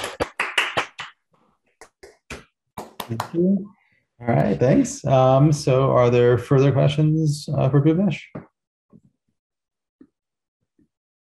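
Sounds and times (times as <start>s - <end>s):
online audience scattered claps after a talk: 0.0s - 1.2s, 1.8s - 3.4s
speech: 3.1s - 8.5s.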